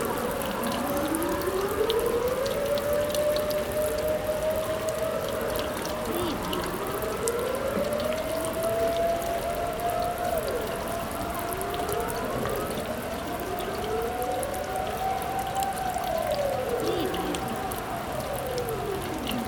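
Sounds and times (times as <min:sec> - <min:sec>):
rain: 0:00.0 - 0:19.4
siren: 0:00.0 - 0:19.4.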